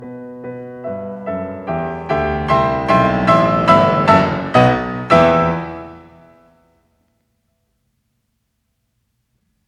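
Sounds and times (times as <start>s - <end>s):
prestissimo piano sonata movement in E major: 0.0s - 6.4s.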